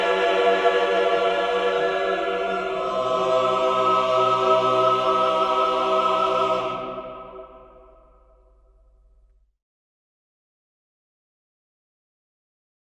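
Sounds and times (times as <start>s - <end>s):
bishop's choir singing at a dismissal: 0.0s - 8.5s.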